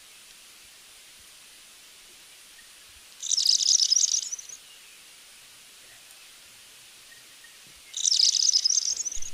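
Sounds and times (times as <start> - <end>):
black flowerpiercer singing: 2.6 - 5.0, 7.0 - 9.3.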